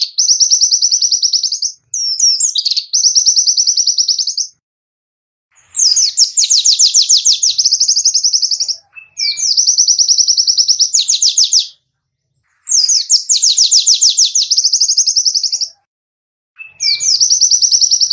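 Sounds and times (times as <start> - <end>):
white-eye singing trills: 0.0 - 4.6, 5.5 - 15.9, 16.6 - 18.1.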